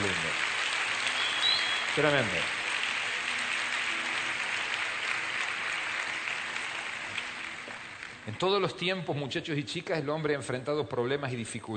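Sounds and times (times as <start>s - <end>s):
applause: 0.0s - 8.8s
speech: 2.0s - 2.6s, 8.3s - 11.7s.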